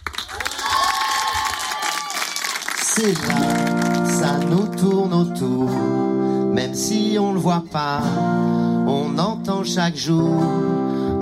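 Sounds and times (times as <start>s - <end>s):
audience applause and cheering: 0.0s - 4.5s
speech: 3.0s - 11.2s.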